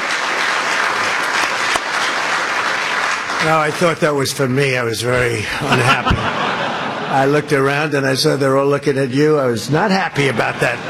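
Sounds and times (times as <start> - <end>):
audience applause for the new Federal Reserve chair: 0.0 - 7.2
speech: 3.4 - 6.5, 7.1 - 10.8
laughter: 5.0 - 9.3, 9.9 - 10.8.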